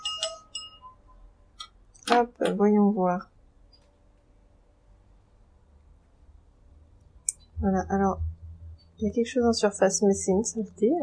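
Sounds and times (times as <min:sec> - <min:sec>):
pen stirring milk clinking against a glass: 0:00.0 - 0:01.0
speech: 0:02.1 - 0:03.3, 0:07.6 - 0:08.3, 0:09.0 - 0:11.0.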